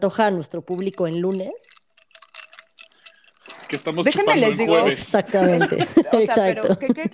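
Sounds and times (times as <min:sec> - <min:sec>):
speech: 0:00.0 - 0:01.8, 0:03.7 - 0:07.1
ice cubes clinking in a glass: 0:00.0 - 0:04.8
laughter: 0:03.8 - 0:07.1.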